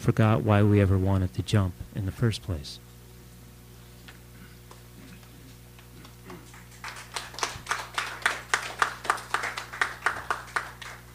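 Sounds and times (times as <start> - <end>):
speech: 0.0 - 2.9
audience clapping: 5.8 - 11.1.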